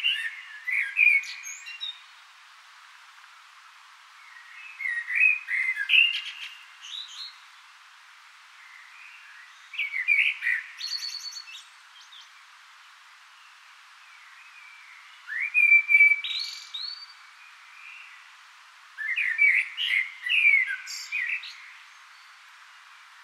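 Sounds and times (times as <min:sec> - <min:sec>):
common blackbird singing flute-like warbles: 0:00.0 - 0:02.0, 0:04.3 - 0:07.4, 0:09.0 - 0:12.3, 0:14.2 - 0:17.2, 0:19.0 - 0:22.4.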